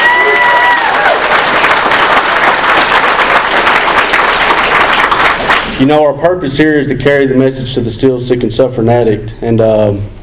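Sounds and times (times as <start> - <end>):
large audience applause: 0.0 - 5.8
speech: 5.8 - 10.2.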